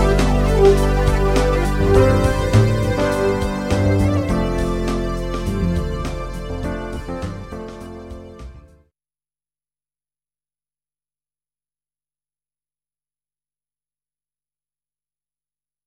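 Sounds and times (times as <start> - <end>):
jazz music: 0.0 - 8.8.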